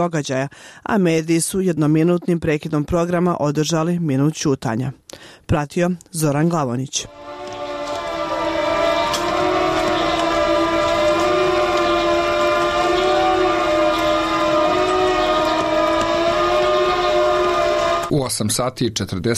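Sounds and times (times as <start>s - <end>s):
speech: 0.0s - 7.4s, 18.1s - 19.3s
memorial siren wailing: 7.1s - 18.1s.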